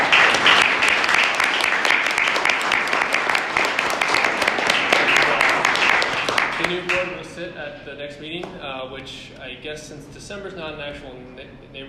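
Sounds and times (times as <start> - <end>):
audience applause for the board: 0.0 - 7.2
speech: 7.9 - 11.8.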